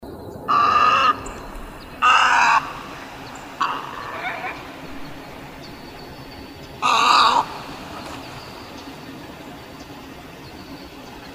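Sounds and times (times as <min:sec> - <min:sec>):
snowy egret giving harsh raspy croaks: 0:00.5 - 0:08.7.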